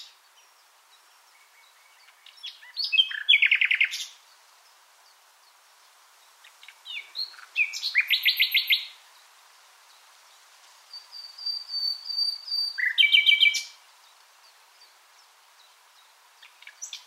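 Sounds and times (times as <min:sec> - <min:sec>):
common nightingale song: 0:01.3 - 0:04.3, 0:06.4 - 0:09.0, 0:11.0 - 0:13.8.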